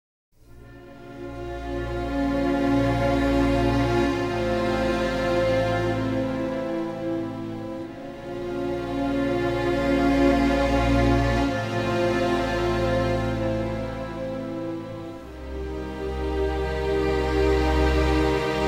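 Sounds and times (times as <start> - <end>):
strings: 0.4 - 18.6.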